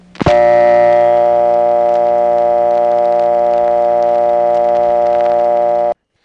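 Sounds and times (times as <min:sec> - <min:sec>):
panel office dial tone on home phone line: 0:00.3 - 0:06.0.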